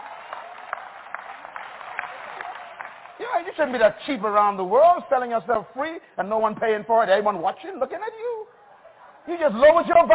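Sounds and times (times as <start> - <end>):
audience clapping: 0.0 - 4.3
speech: 3.2 - 8.5, 9.3 - 10.1.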